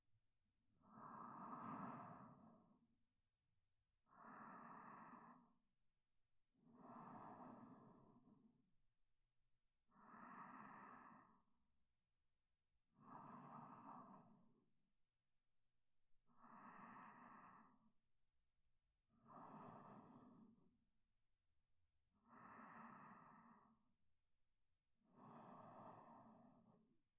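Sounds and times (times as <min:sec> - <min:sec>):
sleep breathing: 0:00.9 - 0:02.6, 0:04.1 - 0:05.5, 0:06.8 - 0:08.4, 0:09.9 - 0:11.4, 0:13.0 - 0:14.5, 0:16.4 - 0:17.8, 0:19.2 - 0:20.6, 0:22.2 - 0:23.9, 0:25.1 - 0:26.8.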